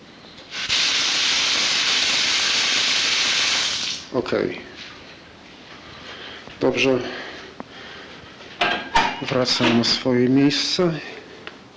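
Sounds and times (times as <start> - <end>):
water running into a bathtub: 0.5 - 4.1
speech: 4.1 - 4.7, 6.6 - 7.2, 9.2 - 11.2.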